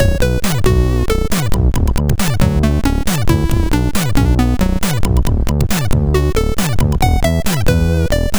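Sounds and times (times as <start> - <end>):
MOS 6581R2 SID chip music: 0.0 - 8.3.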